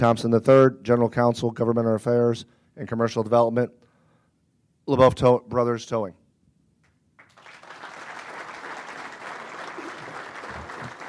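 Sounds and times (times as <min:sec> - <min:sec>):
speech: 0:00.0 - 0:03.8, 0:04.9 - 0:06.2
audience applause at a towing industry honours event: 0:07.2 - 0:11.0.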